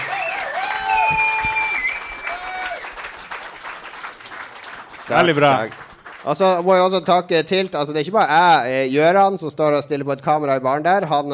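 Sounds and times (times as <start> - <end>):
audience applause: 0.0 - 6.7
speech: 5.1 - 11.3.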